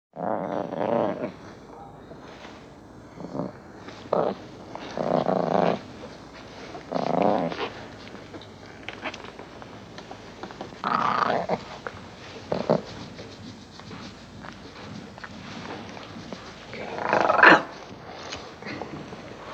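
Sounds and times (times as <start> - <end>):
lion growling: 0.1 - 1.9, 3.0 - 19.5.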